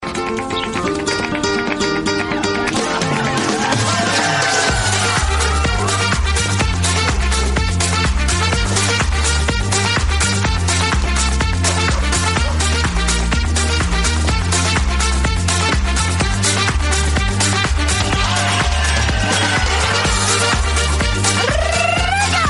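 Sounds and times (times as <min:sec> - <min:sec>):
Russian song: 0:01.0 - 0:22.4
laughter: 0:02.1 - 0:07.1, 0:18.1 - 0:22.4.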